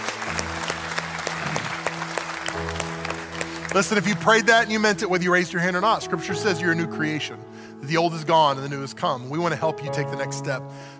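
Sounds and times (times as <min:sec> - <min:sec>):
audience applause: 0:00.0 - 0:05.2
speech: 0:03.7 - 0:10.9.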